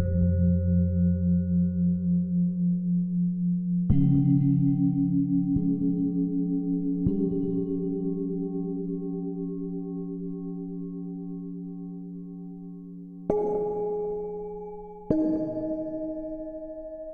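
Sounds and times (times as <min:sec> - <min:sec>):
solfeggio tone: 0:00.0 - 0:17.1.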